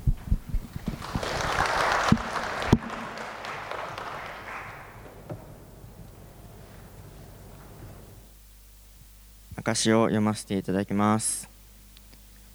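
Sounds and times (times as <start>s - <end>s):
audience applause: 0.7s - 8.2s
speech: 9.7s - 11.5s.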